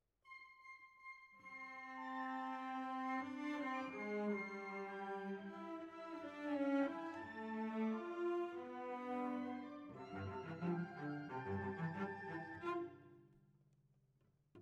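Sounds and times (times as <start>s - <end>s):
cellos playing: 2.0s - 13.0s.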